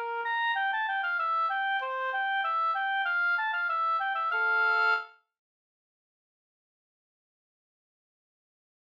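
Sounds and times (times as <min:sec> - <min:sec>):
quadrille music: 0:00.0 - 0:05.1.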